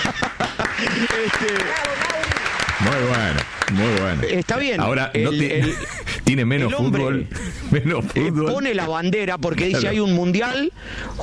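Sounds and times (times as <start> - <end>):
laughter: 0.0 - 1.8, 5.0 - 9.1
crowd applause: 0.0 - 4.5
speech: 1.2 - 2.0, 2.8 - 11.2.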